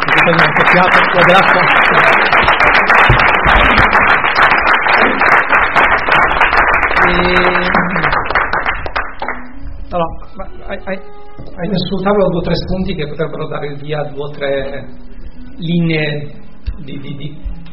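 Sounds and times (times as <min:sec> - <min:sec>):
audience applause: 0:00.0 - 0:09.4
speech: 0:00.2 - 0:02.9, 0:07.1 - 0:07.8, 0:09.9 - 0:15.0, 0:15.6 - 0:17.5.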